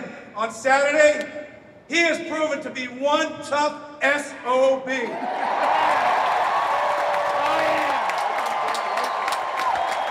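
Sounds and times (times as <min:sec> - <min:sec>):
speech: 0:00.4 - 0:05.8
audience applause: 0:05.4 - 0:10.0.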